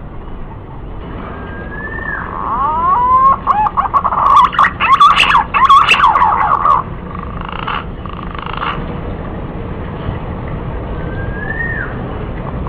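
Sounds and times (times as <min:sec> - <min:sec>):
green pigeon lure call of sweeping quavering whistles: 0:01.3 - 0:08.8, 0:11.1 - 0:12.0.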